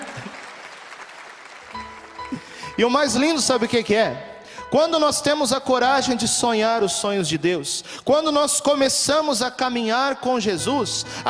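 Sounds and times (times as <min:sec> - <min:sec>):
audience applauding: 0:00.0 - 0:02.7
speech: 0:02.8 - 0:11.2.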